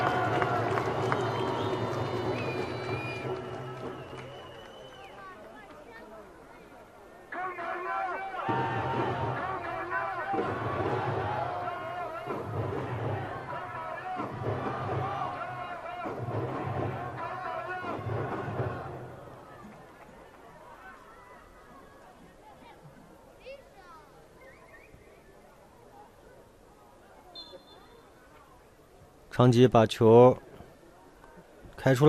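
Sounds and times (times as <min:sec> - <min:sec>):
crowd applause: 0:00.0 - 0:06.2, 0:08.4 - 0:21.2
crowd cheering: 0:00.0 - 0:06.3, 0:07.3 - 0:22.3
speech: 0:29.4 - 0:30.5, 0:31.8 - 0:32.0.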